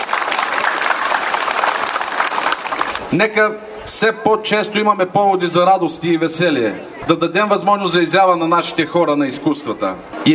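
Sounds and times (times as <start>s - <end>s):
audience applause: 0.0s - 3.1s
speech: 3.1s - 10.3s.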